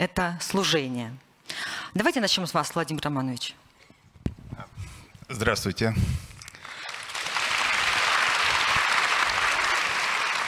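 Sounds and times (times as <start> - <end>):
speech: 0.0 - 3.6, 5.3 - 6.2
audience applause: 6.5 - 10.4.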